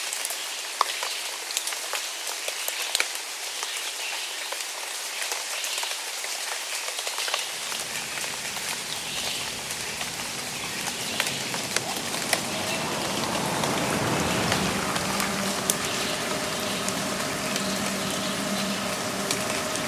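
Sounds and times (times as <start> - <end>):
rain pattering in Burbank, CA: 0.0 - 19.8
low passing traffic rumble: 7.5 - 19.8.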